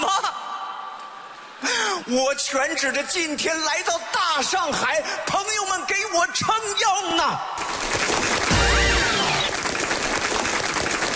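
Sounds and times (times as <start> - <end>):
speech: 2.1 - 8.1
applause: 7.6 - 11.1
cheering: 7.6 - 11.1.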